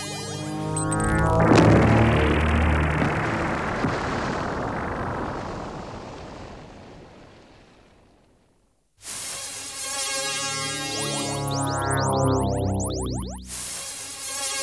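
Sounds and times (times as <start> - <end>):
layered sweeping space battle tones: 0.6 - 1.6, 10.4 - 13.7
roaring space battle blast: 1.2 - 7.3.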